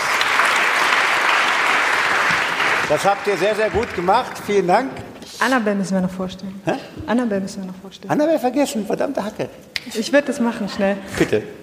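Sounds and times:
audience applause: 0.0s - 4.9s
speech: 2.9s - 11.6s.

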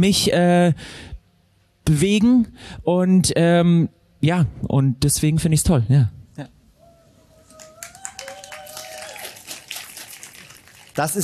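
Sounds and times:
speech: 0.0s - 1.1s, 1.8s - 6.6s, 11.0s - 11.2s
live audience applauding: 7.5s - 11.2s.

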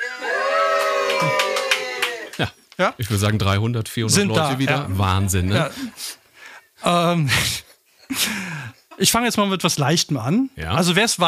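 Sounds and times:
live audience cheering: 0.0s - 2.5s
speech: 2.4s - 6.2s, 6.8s - 11.2s.

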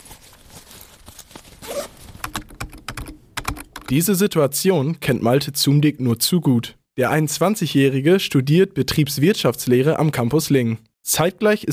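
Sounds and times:
keyboard typing in university library: 2.2s - 4.0s
speech: 3.9s - 11.7s.

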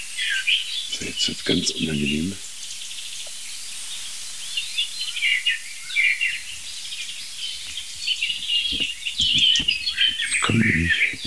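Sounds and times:
European robin singing: 0.0s - 11.2s
speech: 1.1s - 2.4s
soft low thuds: 8.3s - 11.2s.

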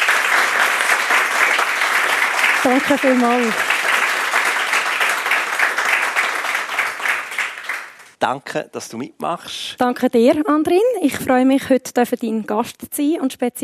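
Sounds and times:
audience applause: 0.0s - 8.2s
speech: 2.6s - 3.7s, 8.2s - 13.6s.

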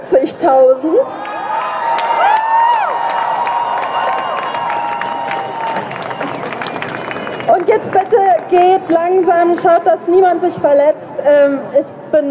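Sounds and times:
speech: 0.0s - 1.3s, 7.6s - 12.3s
large demonstration crowd cheering: 1.0s - 9.4s.

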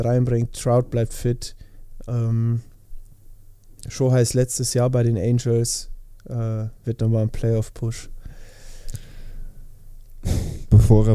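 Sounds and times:
speech: 0.0s - 2.7s, 3.8s - 8.1s, 10.2s - 11.1s
person blowing nose: 10.2s - 10.7s.

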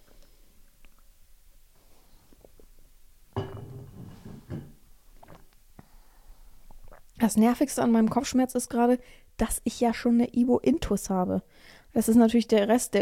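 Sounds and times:
sipping water: 5.1s - 7.2s
speech: 7.2s - 13.0s.

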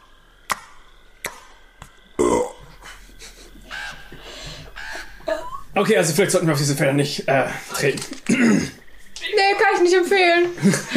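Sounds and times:
voice imitating smacking with clicky and slurpy mouth noises: 0.5s - 1.9s
speech: 5.8s - 8.8s, 9.8s - 10.9s.

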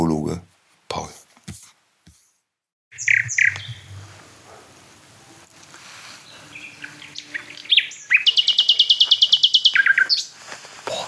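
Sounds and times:
nightingale singing: 2.9s - 4.2s, 5.2s - 10.4s.

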